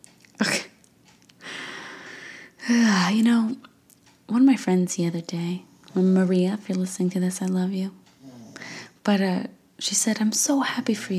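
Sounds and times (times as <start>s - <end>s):
speech: 2.7s - 3.7s, 4.3s - 8.0s, 9.0s - 11.1s
snoring: 8.2s - 8.8s
raspy wheezing breath: 8.2s - 9.0s.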